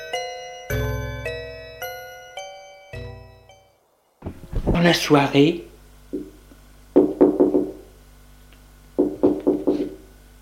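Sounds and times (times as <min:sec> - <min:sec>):
speech: 0:04.8 - 0:05.7
knocking on a door: 0:06.1 - 0:06.4, 0:07.0 - 0:07.9, 0:09.0 - 0:10.0.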